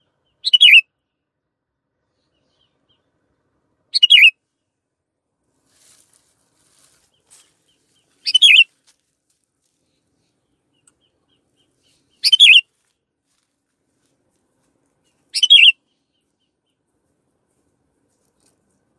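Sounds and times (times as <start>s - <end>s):
canary chirping: 0.4s - 0.8s, 3.9s - 4.3s, 7.7s - 8.7s, 10.7s - 12.6s, 15.3s - 15.8s.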